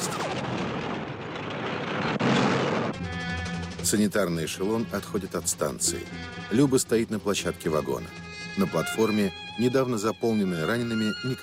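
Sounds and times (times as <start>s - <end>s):
explosion: 0.0s - 3.0s
speech: 3.9s - 11.4s.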